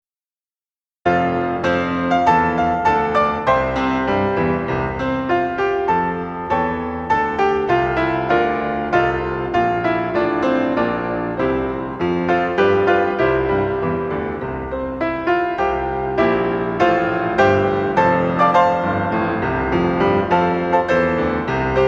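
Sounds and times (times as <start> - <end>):
piano piece: 1.0 - 21.8.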